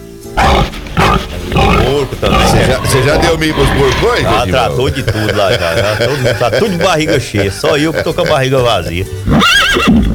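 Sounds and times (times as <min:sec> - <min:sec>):
hungry dogs barking for food: 0:00.4 - 0:07.0
laughter: 0:01.7 - 0:09.0
speech: 0:02.1 - 0:10.0.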